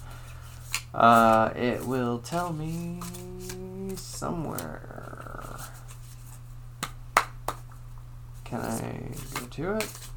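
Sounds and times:
shuffling playing cards: 0.2 - 7.8, 8.4 - 10.1
speech: 0.9 - 5.1, 8.5 - 10.1.

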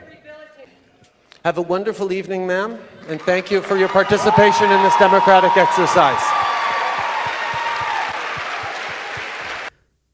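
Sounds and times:
speech: 1.4 - 6.4
crowd of supporters clapping: 3.0 - 9.7.

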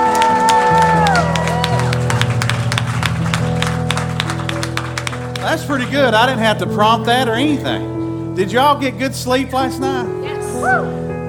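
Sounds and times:
audience clapping: 0.0 - 6.7
speech: 5.7 - 11.1.

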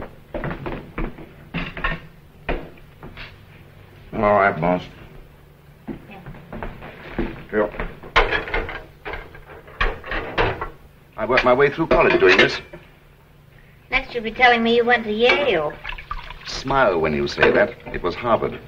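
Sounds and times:
speech: 4.2 - 5.0, 11.2 - 12.8, 14.1 - 15.8, 16.6 - 18.6
dishes and utensils clattering: 7.2 - 12.9, 15.2 - 18.2.

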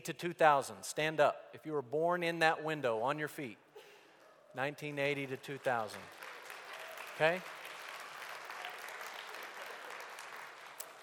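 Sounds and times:
speech: 0.0 - 3.6, 4.5 - 6.2, 7.2 - 7.6
crowd applauding: 5.3 - 11.0.

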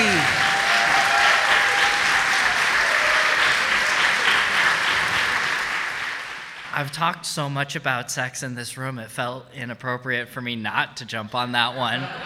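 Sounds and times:
audience applause: 0.0 - 6.8
speech: 6.8 - 12.2
laughter: 11.7 - 12.2.

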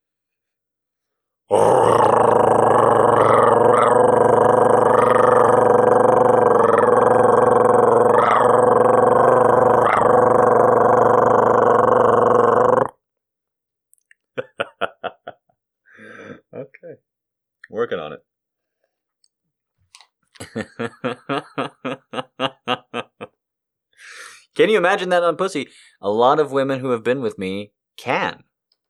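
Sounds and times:
man grunting: 1.5 - 12.9
man's voice imitating a cat's purr: 1.5 - 13.0
laughter: 14.4 - 15.4, 20.4 - 23.3
speech: 24.7 - 28.4.

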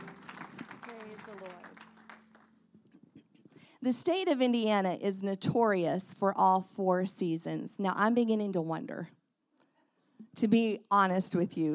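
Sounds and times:
audience clapping: 0.0 - 2.7
speech: 3.8 - 9.2, 10.4 - 11.7.

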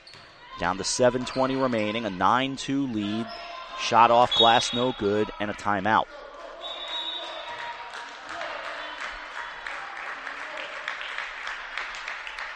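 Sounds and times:
speech: 0.6 - 6.2
crowd applauding in large indoor arena: 6.3 - 12.5.

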